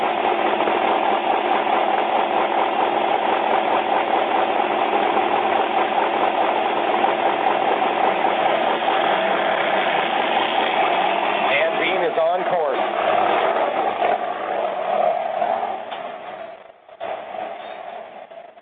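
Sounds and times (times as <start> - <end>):
Menzies Motorsports Red Bull off-road race vehicle engine idling at the San Felipe 250: 0.0 - 18.5.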